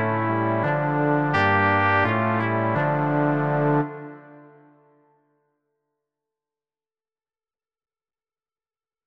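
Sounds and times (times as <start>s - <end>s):
brass quartet: 0.0s - 4.9s.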